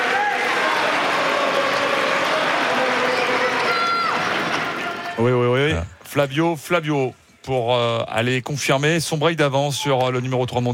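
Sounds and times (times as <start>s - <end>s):
tennis crowd at Court Philippe-Chatrier cheering and clapping: 0.0s - 5.2s
speech: 5.2s - 10.7s.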